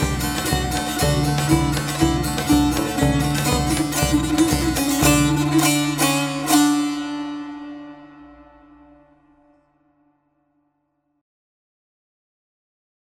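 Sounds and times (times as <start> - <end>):
tar: 0.0 - 9.1
saz: 0.0 - 9.6.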